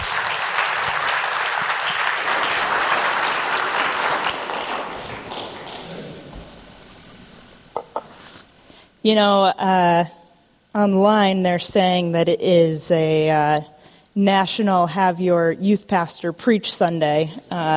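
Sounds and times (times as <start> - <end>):
round of applause: 0.0 - 6.5
speech: 9.0 - 10.2, 10.8 - 17.7.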